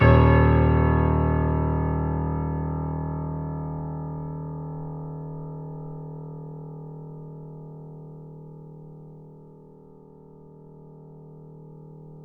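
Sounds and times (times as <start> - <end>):
grand piano D sharp 0 at mezzo-forte: 0.0 - 5.9.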